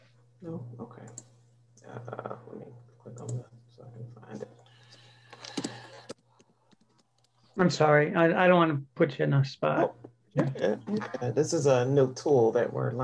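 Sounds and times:
low electrical hum: 0.0s - 13.0s
speech: 0.4s - 1.3s, 7.6s - 13.0s
computer mouse clicks: 4.8s - 7.6s.

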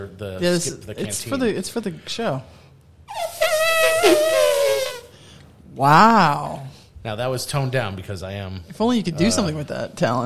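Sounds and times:
speech: 0.0s - 2.6s, 5.8s - 10.2s
voice imitating an elephant's trumpet: 3.1s - 5.1s.

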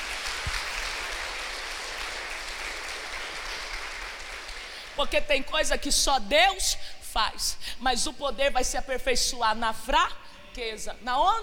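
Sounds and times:
audience applauding: 0.0s - 5.0s
speech: 5.0s - 11.4s.

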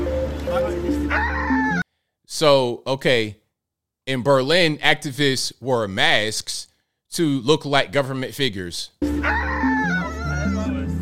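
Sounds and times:
person imitating a rooster crowing: 1.1s - 1.8s, 9.2s - 10.9s
speech: 2.4s - 3.4s, 4.1s - 9.5s.

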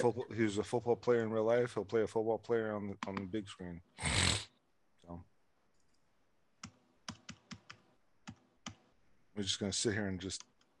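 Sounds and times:
speech: 0.0s - 4.4s, 5.1s - 5.3s, 9.4s - 10.7s
computer keyboard keys clicking: 6.6s - 8.8s.

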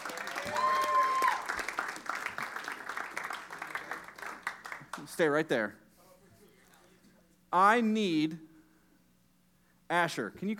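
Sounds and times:
audience applause: 0.0s - 5.2s
speech: 5.1s - 5.8s, 7.5s - 8.5s, 9.9s - 10.5s.

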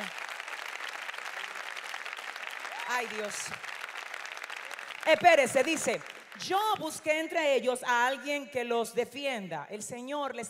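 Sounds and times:
audience applauding: 0.0s - 7.1s
speech: 2.9s - 3.7s, 5.0s - 10.4s.

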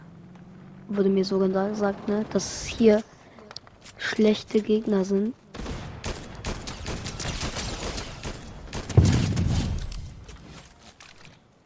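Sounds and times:
speech: 0.9s - 3.1s, 3.9s - 5.4s
gunfire aimed at the player in a shooter video game: 5.5s - 10.7s.

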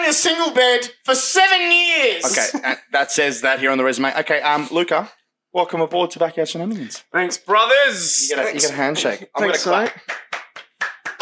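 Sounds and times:
speech: 0.1s - 10.2s
laughter: 2.2s - 3.1s
hand clapping: 9.6s - 11.1s.

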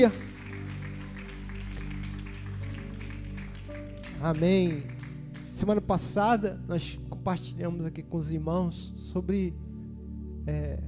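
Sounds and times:
speech: 0.0s - 0.2s, 4.2s - 5.0s, 5.6s - 9.6s, 10.4s - 10.8s
audience applauding: 0.0s - 6.1s
soft sustained keyboard chords: 0.0s - 10.8s.

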